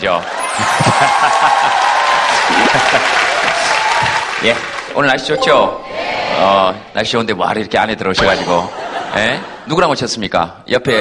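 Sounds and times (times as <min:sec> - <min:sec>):
speech: 0:00.0 - 0:00.4, 0:01.0 - 0:01.9, 0:02.5 - 0:03.6, 0:04.4 - 0:11.0
scattered cheers: 0:00.2 - 0:04.4
large crowd applause: 0:00.2 - 0:05.0
laughter: 0:00.4 - 0:03.6, 0:08.5 - 0:09.9.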